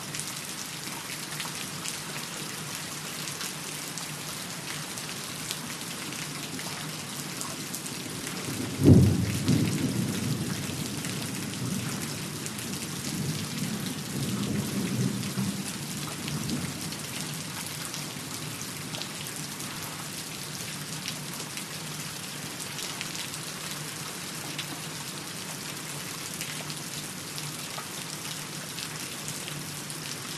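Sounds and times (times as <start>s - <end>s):
rain drips on concrete: 0.0s - 30.3s
thunder: 8.5s - 11.9s.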